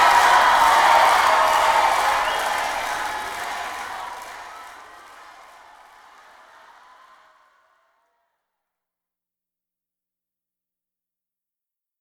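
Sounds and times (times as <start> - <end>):
applause: 0.0 - 8.1.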